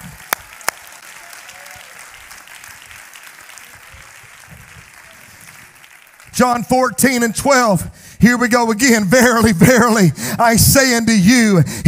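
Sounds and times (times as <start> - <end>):
audience clapping hands: 0.0 - 7.2
speech: 6.4 - 11.8.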